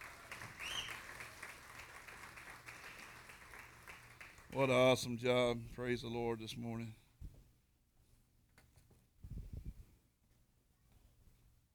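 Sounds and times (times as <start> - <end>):
audience applause for the band: 0.0 - 5.0
speech: 4.5 - 7.0.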